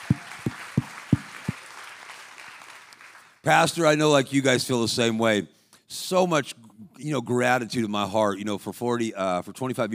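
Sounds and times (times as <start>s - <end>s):
hand claps: 0.0s - 3.4s
speech: 3.4s - 9.9s.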